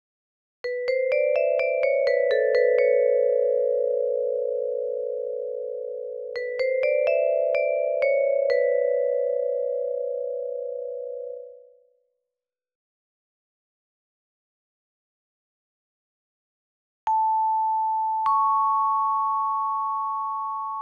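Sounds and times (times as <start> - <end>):
vibraphone: 0.7 - 11.7, 17.1 - 20.7.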